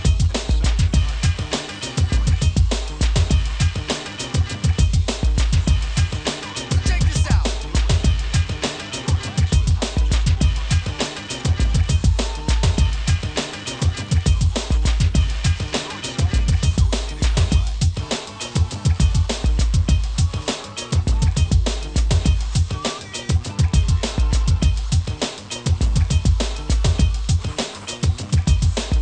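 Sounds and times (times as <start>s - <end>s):
hip hop music: 0.0s - 28.9s.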